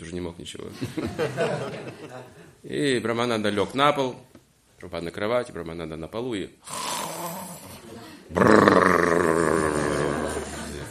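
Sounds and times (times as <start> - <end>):
speech: 0.0 - 6.9, 8.3 - 8.8
laughter: 0.8 - 2.5, 9.9 - 10.9
voice imitating loud snoring: 6.7 - 7.7, 8.3 - 10.7.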